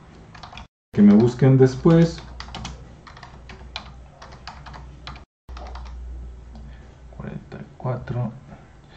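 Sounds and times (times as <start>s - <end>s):
computer keyboard typing a WhatsApp phone number: 0.3s - 6.0s
speech: 1.0s - 2.3s.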